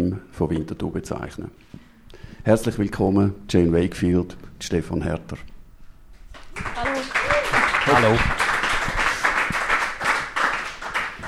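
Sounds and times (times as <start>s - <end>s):
speech: 0.1s - 5.5s, 7.9s - 8.4s
audience applause in a full hall at an evening event: 6.4s - 11.2s.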